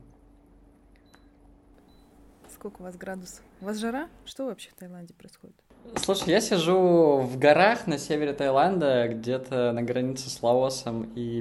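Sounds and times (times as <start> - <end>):
air conditioner beeping as setting changed: 1.0 - 2.4, 3.1 - 4.1
speech: 2.6 - 11.3.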